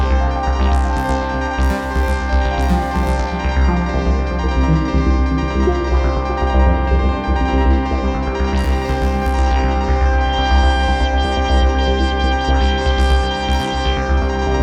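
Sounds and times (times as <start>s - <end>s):
Hohner KS49 synthesizer with Doepfer DarkTime sequencer: 0.0s - 14.6s.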